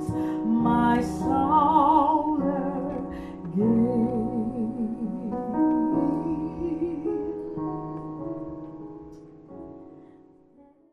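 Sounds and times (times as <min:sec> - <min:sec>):
gospel song couplet: 0:00.0 - 0:08.1.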